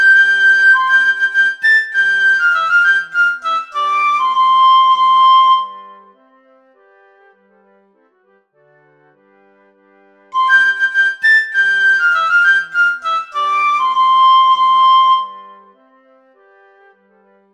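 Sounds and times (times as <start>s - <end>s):
piccolo: 0.0s - 7.2s, 10.3s - 17.0s.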